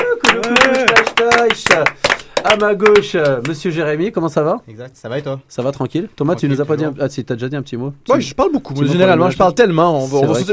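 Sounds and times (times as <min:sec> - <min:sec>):
applause: 0:00.0 - 0:03.6
speech: 0:01.4 - 0:10.5.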